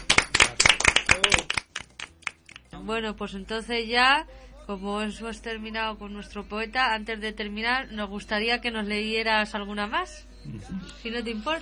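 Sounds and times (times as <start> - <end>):
small group clapping after a poem reading: 0.0 - 2.8
speech: 2.9 - 11.6.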